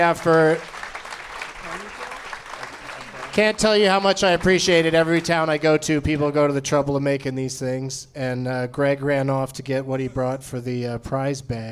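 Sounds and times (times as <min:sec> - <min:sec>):
speech: 0:00.0 - 0:00.7, 0:03.4 - 0:11.6
audience applause: 0:00.0 - 0:05.7.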